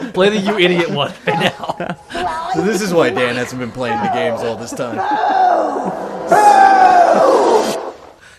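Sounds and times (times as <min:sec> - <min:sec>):
laughter: 0:00.0 - 0:07.8
speech: 0:00.2 - 0:07.3
crowd cheering sound effect: 0:01.3 - 0:08.2
crowd booing sound effect: 0:02.9 - 0:08.2.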